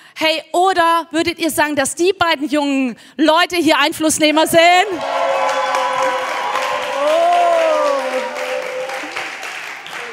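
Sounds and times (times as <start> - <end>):
speech: 0.2 - 5.5
crowd cheering: 4.8 - 10.1
clapping: 4.9 - 10.1.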